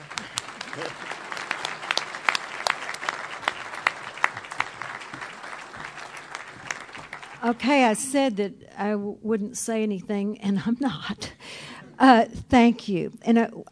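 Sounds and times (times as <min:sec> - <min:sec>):
audience clapping: 0:00.0 - 0:08.0
speech: 0:00.8 - 0:01.2, 0:07.4 - 0:11.3, 0:12.0 - 0:13.7.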